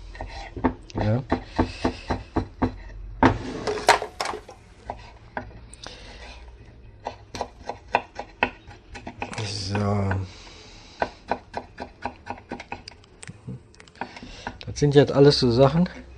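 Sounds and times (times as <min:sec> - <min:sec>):
knife dicing apple on a cutting board: 0:00.2 - 0:03.4, 0:07.0 - 0:10.2, 0:11.0 - 0:12.9
speech: 0:01.0 - 0:01.8, 0:14.8 - 0:16.0.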